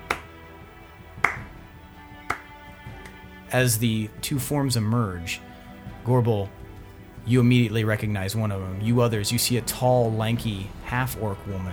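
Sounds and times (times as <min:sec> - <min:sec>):
light clapping: 0:00.0 - 0:03.4
speech: 0:03.5 - 0:06.6, 0:07.2 - 0:11.7.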